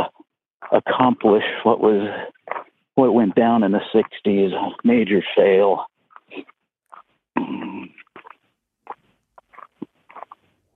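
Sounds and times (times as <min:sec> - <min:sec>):
speech: 0:00.7 - 0:02.4, 0:03.0 - 0:06.5
footsteps crunching on rocky mountain trail: 0:02.4 - 0:02.8, 0:08.1 - 0:10.7.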